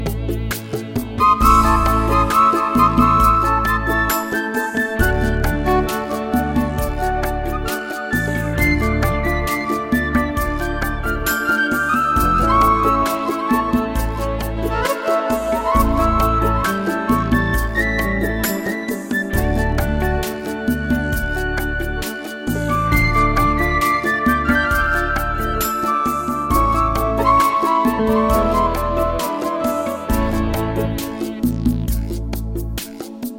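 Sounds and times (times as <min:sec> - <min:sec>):
blue ballad: 0:00.0 - 0:33.3.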